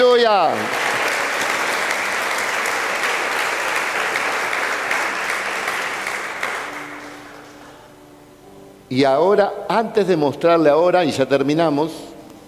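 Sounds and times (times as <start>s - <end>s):
applause: 0.0s - 7.4s
speech: 8.9s - 12.1s.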